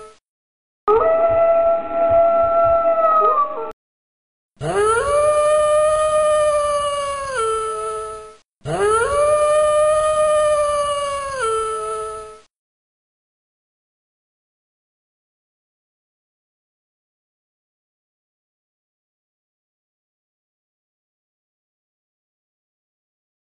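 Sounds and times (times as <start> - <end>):
wolf howling: 0.9 - 3.8, 4.6 - 12.4.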